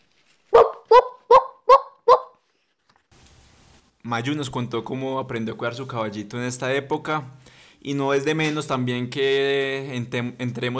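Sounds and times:
dogs barking: 0.5s - 2.3s
speech: 4.0s - 10.7s.

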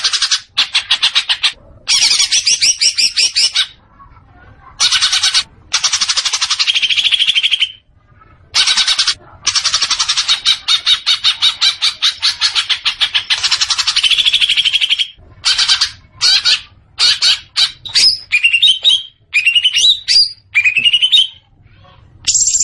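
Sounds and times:
leafbird song with whistled notes and buzzy chattering: 0.0s - 3.8s, 4.8s - 7.9s, 8.6s - 21.5s, 22.2s - 22.6s.

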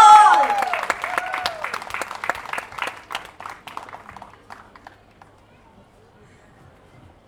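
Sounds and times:
audience applauding Indian craftsmen and artisans: 0.0s - 5.6s.

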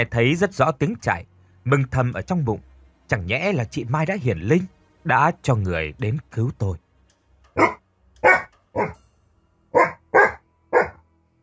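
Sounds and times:
speech: 0.0s - 6.8s, 7.6s - 7.8s, 8.8s - 9.0s
white-haired dog barking loudly: 7.6s - 9.0s, 9.8s - 11.0s.

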